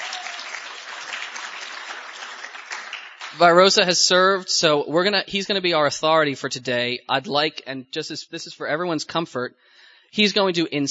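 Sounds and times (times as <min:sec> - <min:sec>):
audience cheering and applauding: 0:00.0 - 0:03.7
speech: 0:03.3 - 0:10.9.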